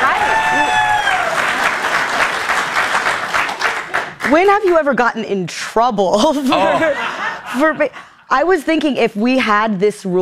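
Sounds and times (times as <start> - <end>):
audience applause: 0.0 - 4.8
speech: 4.3 - 10.2
laughter: 6.3 - 8.0.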